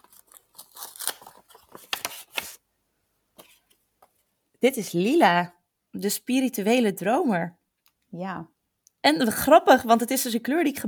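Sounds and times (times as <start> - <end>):
paper envelope being torn open: 0.0 - 2.6
speech: 4.6 - 10.8.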